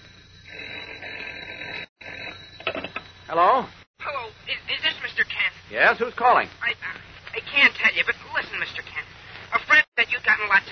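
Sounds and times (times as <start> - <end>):
telephone ringing: 0.0 - 3.6
speech: 3.3 - 3.8, 5.7 - 6.8, 7.5 - 8.9, 9.7 - 10.6.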